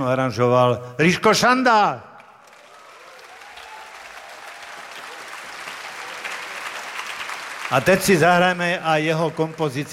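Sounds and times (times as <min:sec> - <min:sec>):
speech: 0:00.0 - 0:02.1, 0:07.7 - 0:09.9
audience applause for the arranger at a jazz evening: 0:02.4 - 0:09.9.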